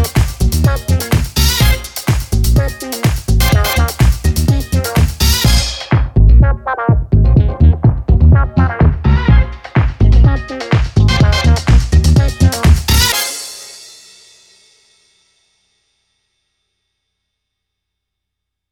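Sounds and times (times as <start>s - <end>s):
disco music: 0.0s - 13.7s.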